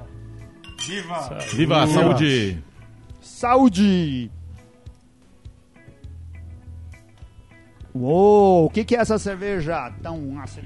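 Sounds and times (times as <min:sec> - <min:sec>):
glasses clinking in a toast: 0:00.6 - 0:02.4
speech: 0:00.8 - 0:04.4, 0:08.0 - 0:10.6.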